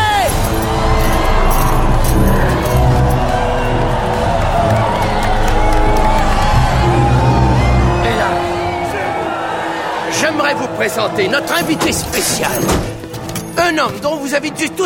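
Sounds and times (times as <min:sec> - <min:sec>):
crowd applauding and cheering: 0:00.0 - 0:11.8
speech: 0:10.8 - 0:12.9, 0:13.6 - 0:14.8.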